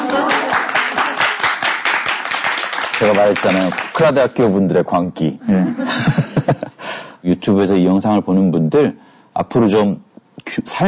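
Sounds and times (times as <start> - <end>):
audience clapping after a talk on investing: 0.0 - 4.2
speech: 0.1 - 0.3, 3.0 - 10.8
laughter: 5.4 - 6.8.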